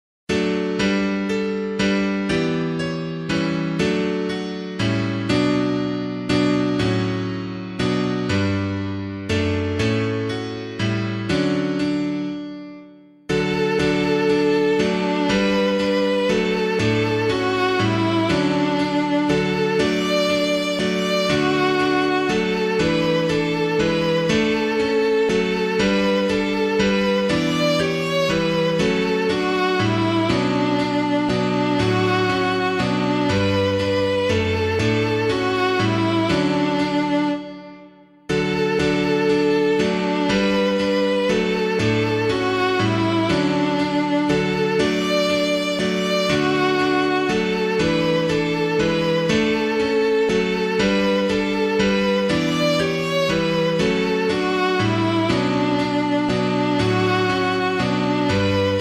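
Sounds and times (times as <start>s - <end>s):
piano: 0.3s - 58.7s.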